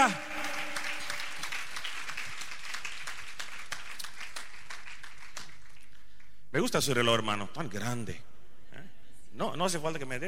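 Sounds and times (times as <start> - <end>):
speech: 0.0 - 0.2, 6.6 - 8.3, 9.4 - 10.2
audience applause: 0.0 - 5.9.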